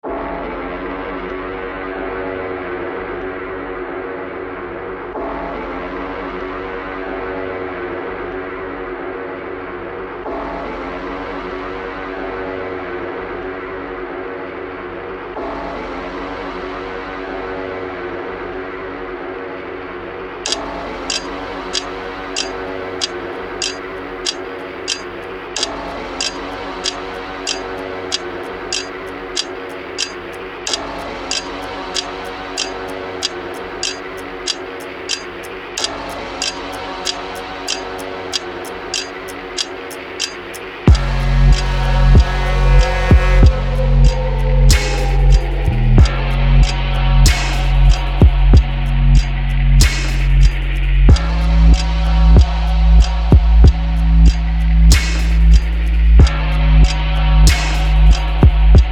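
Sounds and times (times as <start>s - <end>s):
instrumental music: 20.5s - 58.9s.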